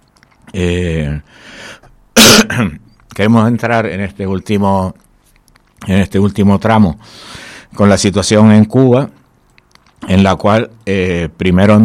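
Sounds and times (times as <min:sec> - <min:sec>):
speech: 0:00.5 - 0:01.3, 0:02.6 - 0:05.0, 0:05.8 - 0:09.2, 0:10.0 - 0:11.8
throat clearing from a speaker troubled by a sore throat: 0:02.2 - 0:02.8.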